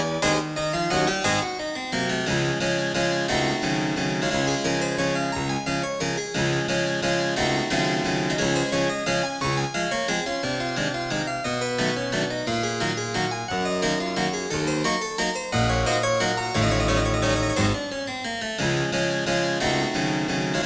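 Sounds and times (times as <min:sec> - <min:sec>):
harpsichord waltz in 31edo tuning: 0:00.0 - 0:20.6.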